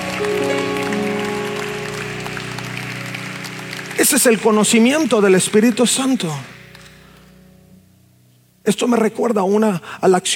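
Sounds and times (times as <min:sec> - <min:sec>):
audience applause: 0:00.0 - 0:07.3
sustained low keyboard chords: 0:00.0 - 0:09.8
speech: 0:00.2 - 0:00.4, 0:04.1 - 0:06.6, 0:08.7 - 0:10.3.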